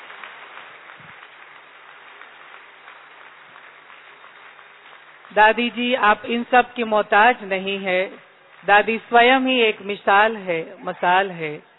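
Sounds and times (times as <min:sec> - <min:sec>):
audience applause: 0:00.0 - 0:11.7
speech: 0:05.3 - 0:11.7.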